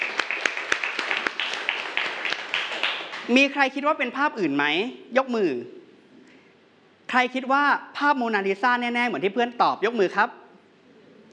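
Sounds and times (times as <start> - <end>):
class of students clapping: 0.0 - 3.3
steady hiss: 0.0 - 11.3
speech: 3.3 - 5.8, 7.1 - 10.4.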